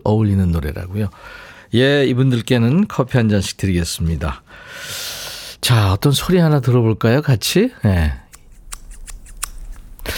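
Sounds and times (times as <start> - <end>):
speech: 0.0 - 5.0, 5.6 - 8.2
hair being cut: 8.2 - 10.1.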